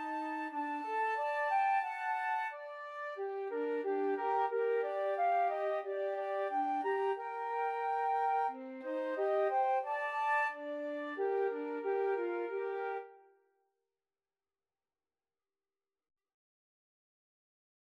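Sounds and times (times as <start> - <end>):
flute trio playing: 0.0 - 13.2.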